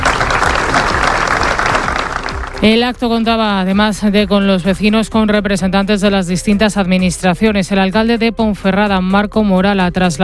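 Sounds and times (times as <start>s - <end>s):
crowd applause at a vigil in front of a town hall: 0.0s - 2.7s
speech: 2.6s - 10.2s.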